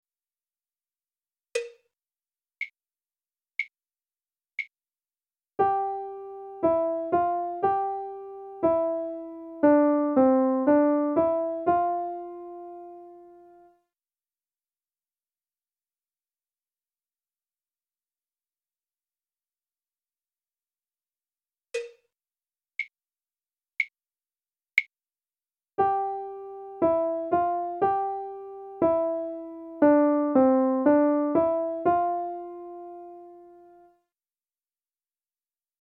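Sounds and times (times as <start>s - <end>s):
melody: 5.6s - 13.6s, 25.8s - 33.7s.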